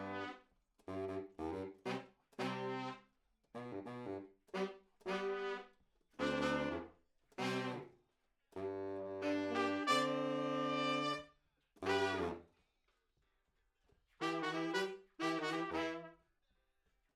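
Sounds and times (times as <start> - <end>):
trombone: 0.0 - 3.0, 3.6 - 7.9, 8.6 - 12.4, 14.2 - 16.2.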